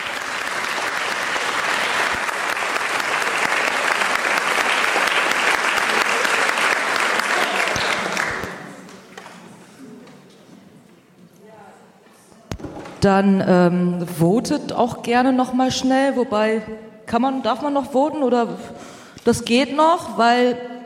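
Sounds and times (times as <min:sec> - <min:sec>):
audience applause: 0:00.0 - 0:09.6
speech: 0:13.0 - 0:20.7.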